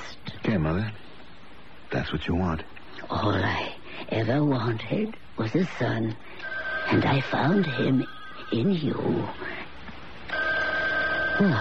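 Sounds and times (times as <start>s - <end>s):
speech: 0.5s - 1.0s, 1.9s - 9.5s, 11.4s - 11.5s
telephone ringing: 6.4s - 9.3s, 10.3s - 11.5s.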